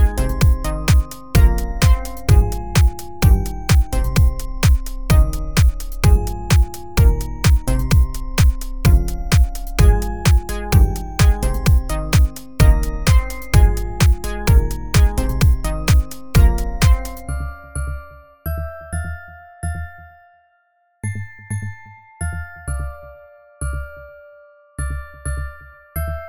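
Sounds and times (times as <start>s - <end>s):
deep house mix: 0.0s - 17.3s
glockenspiel: 0.0s - 26.2s.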